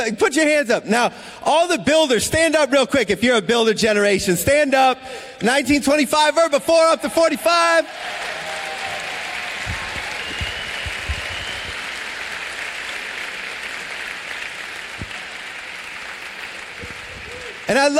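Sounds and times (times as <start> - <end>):
speech: 0.0 - 8.4, 17.7 - 17.9
large audience applauding: 7.9 - 17.9.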